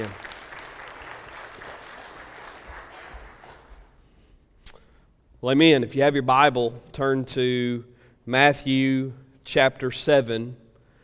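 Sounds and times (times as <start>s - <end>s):
speech: 0.0s - 0.2s, 5.4s - 10.6s
audience round of applause: 0.0s - 4.0s.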